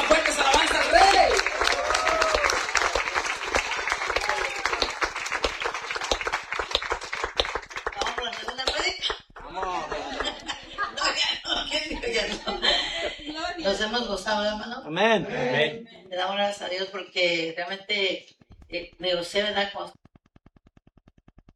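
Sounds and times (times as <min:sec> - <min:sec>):
voices and cheers: 0:00.0 - 0:06.1
audience applause: 0:00.0 - 0:11.2
laughter: 0:08.9 - 0:13.8
speech: 0:13.9 - 0:20.0.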